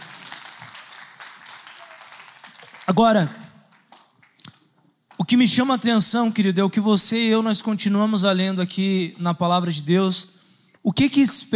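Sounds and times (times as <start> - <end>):
church audience applauding the actors: 0.0 - 4.2
speech: 2.9 - 3.4, 5.3 - 11.5.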